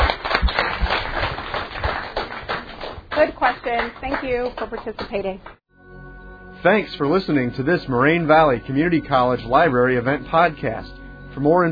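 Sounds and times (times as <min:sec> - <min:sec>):
audience applause: 0:00.0 - 0:05.5
speech: 0:03.2 - 0:05.5, 0:06.6 - 0:11.7.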